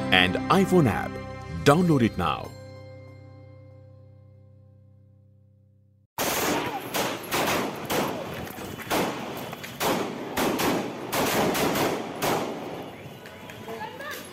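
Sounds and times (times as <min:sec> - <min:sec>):
speech: 0:00.1 - 0:02.6
gunfire as three armed men shoot at Atiq Ahmed and his brother Ashraf: 0:06.2 - 0:08.3, 0:08.9 - 0:12.9.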